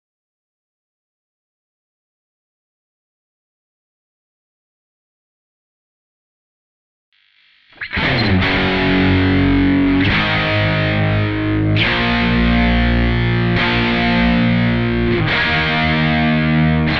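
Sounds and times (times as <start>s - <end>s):
guitar: 7.4s - 16.9s.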